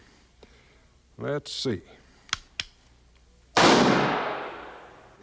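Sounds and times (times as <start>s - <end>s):
speech: 1.3s - 2.0s
muzzle-loading rifle clicks: 2.3s - 2.8s
muzzle-loading rifle gunshot in a shooting contest: 3.6s - 5.1s.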